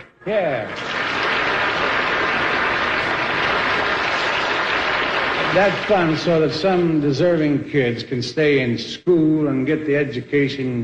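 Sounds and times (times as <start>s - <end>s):
speech: 0.2s - 1.0s, 5.5s - 10.8s
audience applause: 0.6s - 6.7s.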